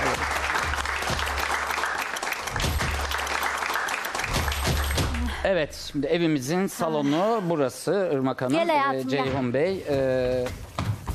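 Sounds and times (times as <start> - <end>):
audience applause: 0.0 - 5.4
speech: 5.5 - 10.7.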